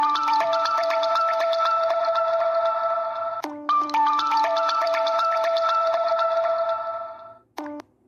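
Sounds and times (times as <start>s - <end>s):
original phone ringtone: 0.0s - 7.8s.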